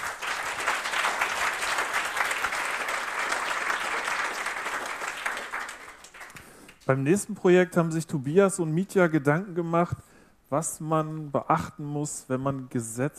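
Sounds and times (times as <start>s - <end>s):
audience applause: 0.0s - 6.8s
speech: 6.9s - 13.1s.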